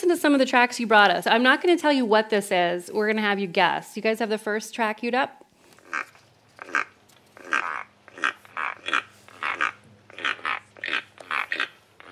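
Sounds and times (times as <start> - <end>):
speech: 0.0 - 6.1
low constant hum: 0.0 - 12.1
keel-billed toucan harsh croaking calls: 5.8 - 12.1.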